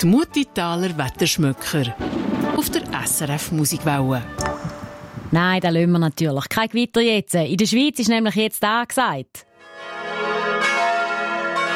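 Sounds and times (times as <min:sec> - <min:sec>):
speech: 0:00.0 - 0:04.6, 0:05.3 - 0:10.0
wedding bell ringing: 0:09.6 - 0:11.7.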